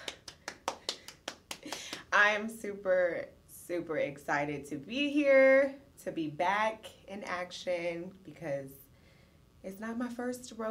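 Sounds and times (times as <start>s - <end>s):
clapping: 0.0s - 2.1s
speech: 2.2s - 8.8s, 9.6s - 10.7s.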